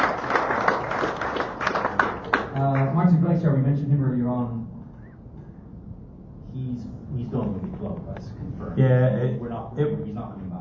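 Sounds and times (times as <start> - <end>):
round of applause from a small group: 0.0 - 3.0
speech: 3.5 - 4.7, 6.8 - 10.6.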